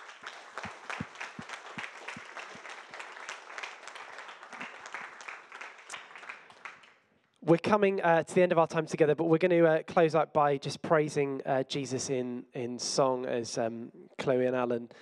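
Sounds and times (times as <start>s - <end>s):
audience applause: 0.0s - 7.0s
speech: 7.5s - 15.0s.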